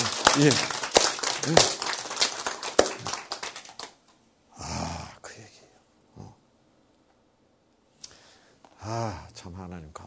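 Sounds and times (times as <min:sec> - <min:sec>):
group clapping: 0:00.0 - 0:04.2
speech: 0:00.4 - 0:00.8, 0:01.4 - 0:01.8.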